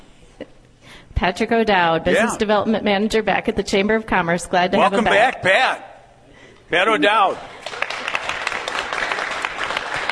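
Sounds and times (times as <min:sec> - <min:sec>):
speech: 0:01.2 - 0:05.9, 0:06.7 - 0:07.6
crowd applause in a semi-standing ovation at a Chamber of Commerce gathering: 0:07.6 - 0:10.0.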